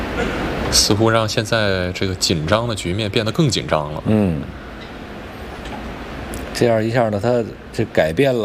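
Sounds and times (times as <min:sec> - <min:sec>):
audience member sneezing: 0:00.1 - 0:00.5
speech: 0:00.7 - 0:04.6, 0:06.6 - 0:08.4.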